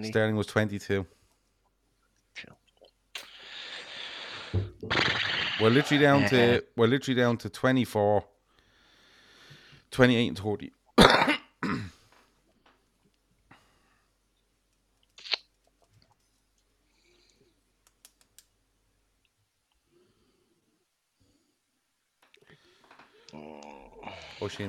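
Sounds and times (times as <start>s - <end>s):
speech: 0.0s - 1.2s, 2.4s - 2.6s, 4.5s - 8.3s, 9.9s - 11.3s, 24.4s - 24.6s
blowing into a microphone: 3.2s - 6.1s.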